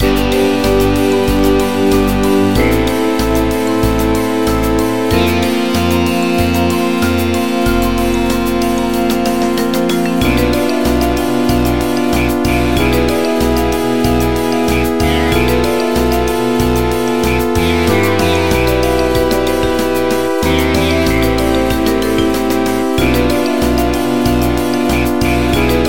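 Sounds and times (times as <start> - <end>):
final battle music: 0.0 - 25.8.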